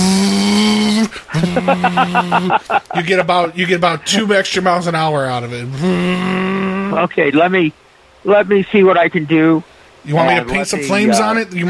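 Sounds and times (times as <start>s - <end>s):
voice imitating a revving car engine: 0.0s - 3.0s, 5.5s - 7.2s, 10.1s - 11.6s
laughter: 1.0s - 4.4s
speech: 1.5s - 11.6s.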